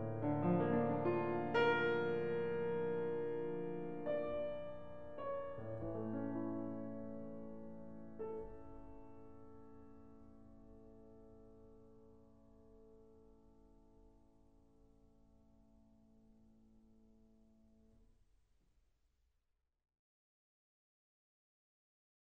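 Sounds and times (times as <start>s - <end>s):
piano etude in A minor: 0.0s - 14.3s.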